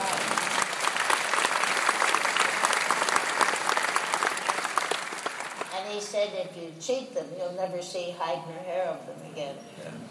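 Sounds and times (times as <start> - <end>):
group of people clapping: 0.0 - 5.8
speech: 6.2 - 10.1.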